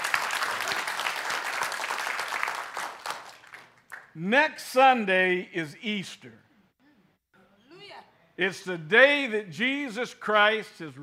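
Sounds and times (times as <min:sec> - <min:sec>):
audience hand clapping: 0:00.0 - 0:04.2
speech: 0:04.2 - 0:06.4, 0:08.4 - 0:11.0.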